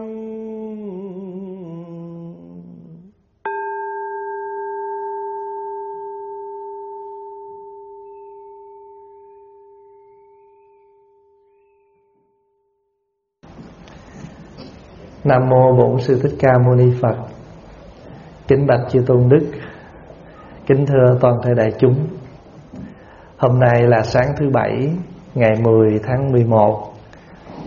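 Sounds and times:
Buddhist temple bell ringing: 0:03.5 - 0:11.4
speech: 0:15.3 - 0:17.3, 0:18.5 - 0:19.6, 0:20.7 - 0:22.2, 0:23.4 - 0:26.9.

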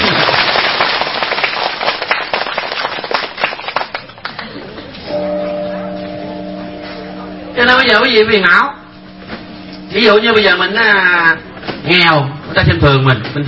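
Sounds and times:
audience applause at a Buddhist dharma talk: 0:00.0 - 0:04.8
sustained steady tone: 0:05.1 - 0:12.6
speech: 0:07.9 - 0:08.8, 0:10.0 - 0:13.4.

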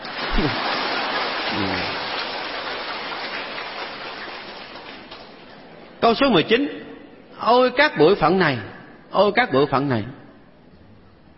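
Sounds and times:
audience applause: 0:00.0 - 0:05.5
speech: 0:00.4 - 0:00.7, 0:01.5 - 0:02.0, 0:06.1 - 0:06.8, 0:07.4 - 0:10.2.

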